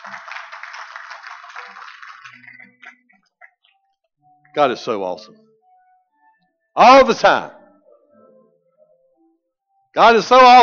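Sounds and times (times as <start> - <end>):
audience applause: 0.0 - 3.0
speech: 4.5 - 5.4, 6.8 - 7.6, 10.0 - 10.6.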